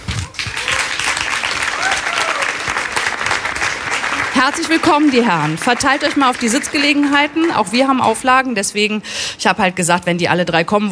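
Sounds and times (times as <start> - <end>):
audience applause: 0.0 - 8.0
speech: 4.4 - 10.9.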